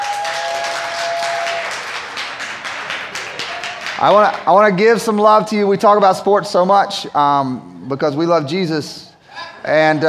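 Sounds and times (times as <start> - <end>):
audience clapping and making noise: 0.0 - 4.8
speech: 4.0 - 10.0.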